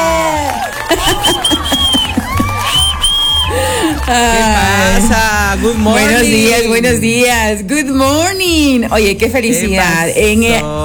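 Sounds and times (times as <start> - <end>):
cheering: 0.0 - 6.4
applause: 0.0 - 6.6
laughter: 0.0 - 7.4, 9.3 - 10.8
speech: 4.1 - 10.8.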